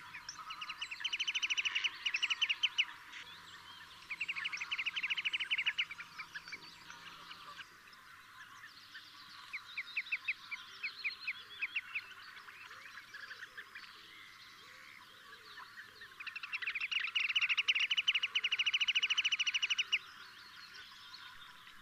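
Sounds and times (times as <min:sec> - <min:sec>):
Marsh sandpiper piping calls: 0:00.0 - 0:03.0, 0:03.9 - 0:06.5, 0:16.2 - 0:20.0
other birds chirping: 0:00.0 - 0:21.7.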